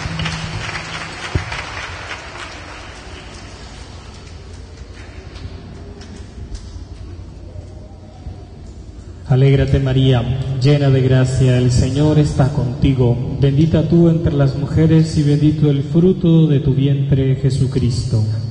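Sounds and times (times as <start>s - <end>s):
loud applause from a religious gathering: 0.0s - 5.4s
speech: 9.3s - 18.4s.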